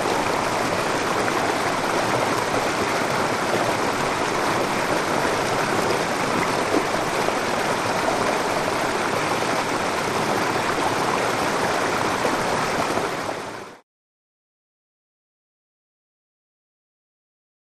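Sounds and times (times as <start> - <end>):
medium waterfall: 0.0 - 13.8.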